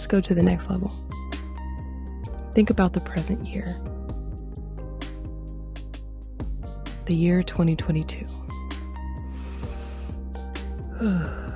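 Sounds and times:
speech: 0:00.0 - 0:01.2, 0:02.6 - 0:04.0, 0:07.1 - 0:08.4, 0:11.0 - 0:11.5
big deep breath during a relaxation session: 0:09.2 - 0:11.5.

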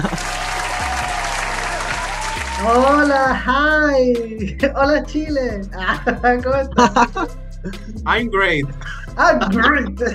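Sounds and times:
applause: 0:00.0 - 0:03.3
laughter: 0:00.0 - 0:03.6, 0:05.7 - 0:10.1
speech: 0:02.6 - 0:10.1.

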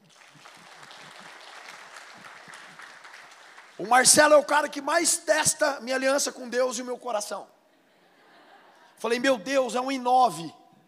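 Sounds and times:
audience applause: 0:00.0 - 0:03.9
speech: 0:03.8 - 0:07.6, 0:09.0 - 0:10.6
laughter: 0:07.7 - 0:09.2.

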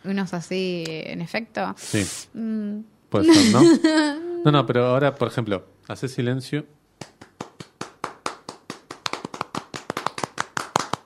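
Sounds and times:
speech: 0:00.0 - 0:07.2
laughter: 0:03.2 - 0:04.1
applause sound effect: 0:07.0 - 0:11.0.

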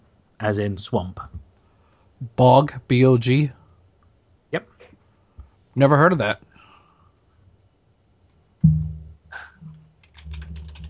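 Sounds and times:
speech: 0:00.4 - 0:01.4, 0:02.2 - 0:03.6, 0:04.5 - 0:04.7, 0:05.8 - 0:06.5
thump: 0:08.6 - 0:09.1
low hum: 0:08.6 - 0:10.8
typing on a computer keyboard: 0:10.0 - 0:10.8.

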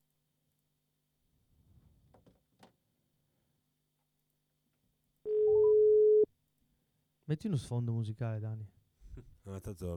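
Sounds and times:
outgoing phone call ringing tone beep: 0:05.3 - 0:06.3
speech: 0:07.3 - 0:09.9.

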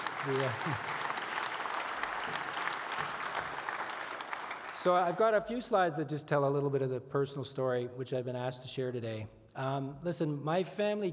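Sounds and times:
audience clapping: 0:00.0 - 0:05.6
speech: 0:00.2 - 0:01.0, 0:02.3 - 0:02.5, 0:04.8 - 0:11.1.

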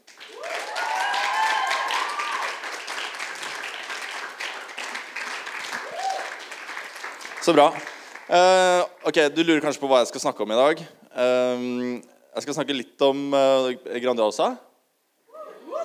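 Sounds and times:
audience applause: 0:00.0 - 0:08.8
speech: 0:07.4 - 0:14.7.

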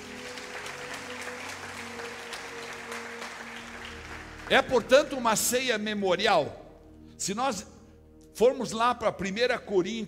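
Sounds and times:
audience applause: 0:00.0 - 0:05.1
speech: 0:04.5 - 0:06.6, 0:07.2 - 0:07.7, 0:08.4 - 0:10.0.

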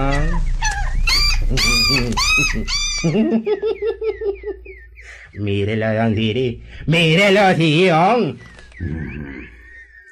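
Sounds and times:
dog whining and whimpering: 0:00.0 - 0:03.2
laughter: 0:01.5 - 0:04.8
speech: 0:01.5 - 0:09.6.

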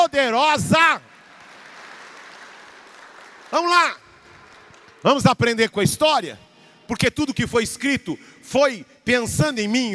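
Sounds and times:
speech: 0:00.0 - 0:01.1, 0:03.5 - 0:04.0, 0:05.0 - 0:09.9
audience applauding: 0:01.0 - 0:05.2.

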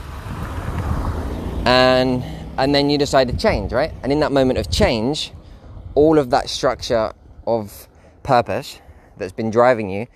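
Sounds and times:
car passing by: 0:00.0 - 0:04.0
speech: 0:01.6 - 0:05.4, 0:06.0 - 0:10.1.

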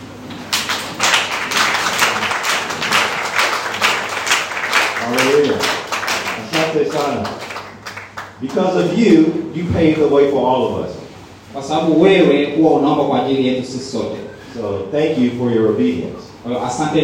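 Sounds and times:
audience applauding: 0:00.5 - 0:08.7
speech: 0:06.8 - 0:07.5, 0:08.4 - 0:17.0.

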